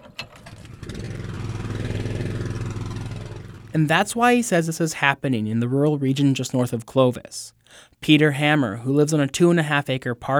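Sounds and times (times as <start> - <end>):
loud generator running: 0.4 - 3.8
speech: 3.8 - 10.3.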